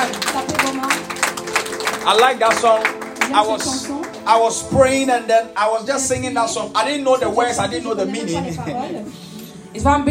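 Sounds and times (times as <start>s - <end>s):
audience clapping hands: 0.0s - 5.1s
speech: 2.0s - 10.0s.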